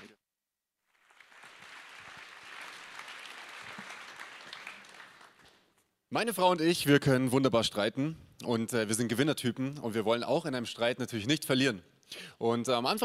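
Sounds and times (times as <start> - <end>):
audience applause: 0.9 - 5.7
speech: 6.1 - 13.0.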